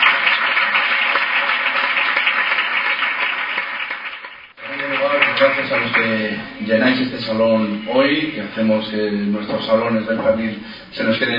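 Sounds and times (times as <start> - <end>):
audience applause: 0.0 - 7.0
speech: 5.4 - 11.3.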